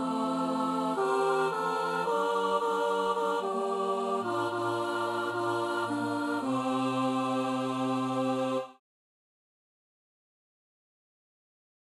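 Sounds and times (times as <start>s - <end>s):
chorus singing: 0.0s - 8.8s.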